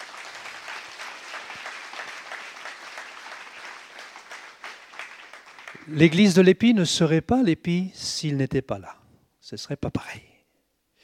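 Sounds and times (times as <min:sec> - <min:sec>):
audience applauding: 0:00.0 - 0:06.2
speech: 0:05.9 - 0:10.3.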